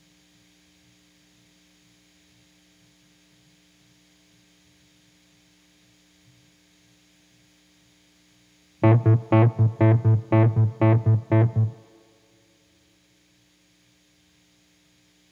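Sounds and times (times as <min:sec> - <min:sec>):
guitar: 0:08.8 - 0:11.9.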